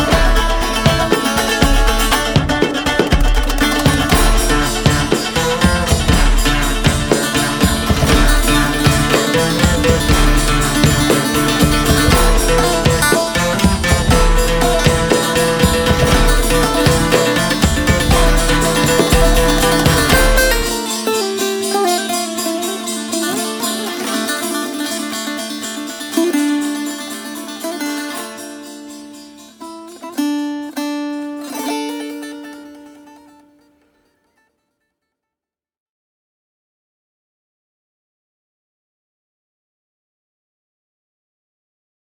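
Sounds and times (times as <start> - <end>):
Middle Eastern rare strings: 0.0 - 33.7.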